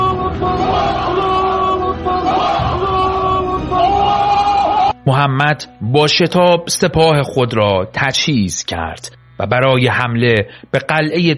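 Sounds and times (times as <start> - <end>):
large crowd shouting Allahu Akbar in unison: 0.0 - 5.0
speech: 5.1 - 11.3.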